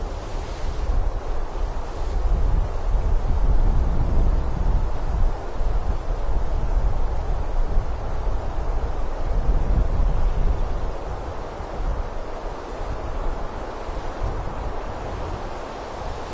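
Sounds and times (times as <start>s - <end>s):
wind moving through a forest: 0.0s - 16.3s.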